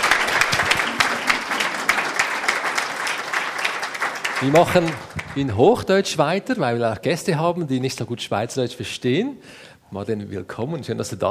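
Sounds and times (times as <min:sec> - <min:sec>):
audience applause welcoming a guest: 0:00.0 - 0:05.8
speech: 0:04.4 - 0:11.2.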